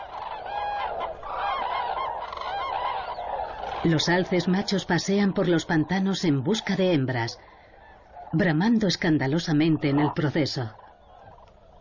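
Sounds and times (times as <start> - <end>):
large flock of cranes trumpeting and honking: 0.0 - 11.8
speech: 3.8 - 7.6, 8.3 - 10.8.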